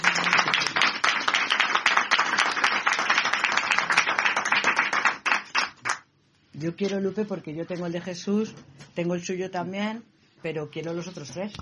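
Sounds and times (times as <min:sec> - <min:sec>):
crowd applause: 0:00.0 - 0:06.0
speech: 0:06.6 - 0:11.6.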